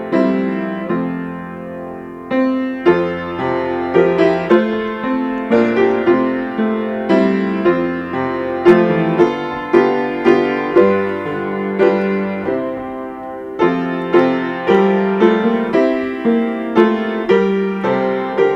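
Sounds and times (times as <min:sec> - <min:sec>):
piano: 0:00.0 - 0:18.5
person singing: 0:08.7 - 0:09.8.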